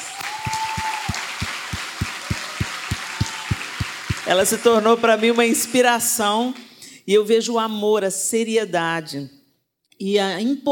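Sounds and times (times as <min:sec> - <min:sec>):
audience applause: 0:00.0 - 0:06.2
speech: 0:04.3 - 0:09.4, 0:10.0 - 0:10.7.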